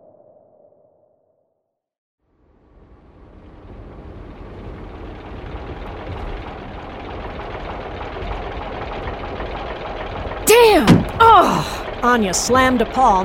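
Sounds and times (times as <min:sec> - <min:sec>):
rented car motor jerking and coughing: 0:10.5 - 0:12.0
speech: 0:12.0 - 0:13.2.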